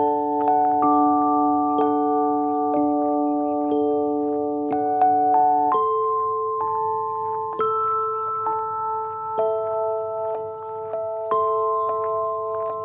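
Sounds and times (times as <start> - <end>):
ringing chime-like tones at Johnson Lake: 0.0 - 12.8.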